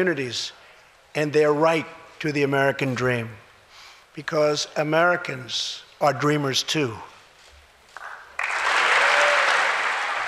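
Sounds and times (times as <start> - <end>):
speech: 0.0 - 0.6, 1.2 - 3.4, 4.2 - 7.1
Republicans cheering in the chamber: 8.4 - 10.2.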